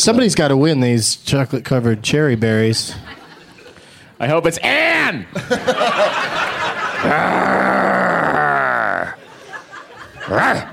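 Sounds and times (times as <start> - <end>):
speech: 0.0 - 3.2, 4.2 - 8.0
laughter: 2.9 - 3.9, 5.3 - 10.7
woman growling: 7.0 - 9.2.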